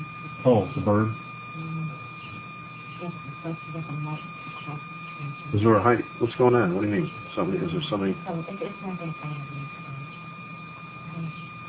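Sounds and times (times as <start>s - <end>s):
high-pitched whistle from fluorescent light: 0.0s - 11.6s
speech: 0.4s - 1.2s, 3.0s - 9.8s.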